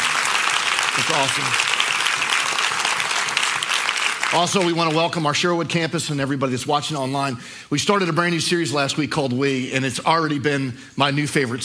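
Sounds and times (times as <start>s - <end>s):
audience applause: 0.0s - 5.2s
speech: 1.0s - 1.8s, 4.3s - 11.6s.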